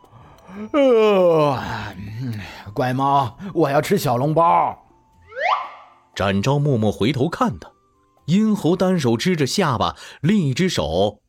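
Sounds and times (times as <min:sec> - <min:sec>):
person yawning on waking: 0:00.4 - 0:02.4
speech: 0:00.5 - 0:04.8, 0:06.2 - 0:11.2.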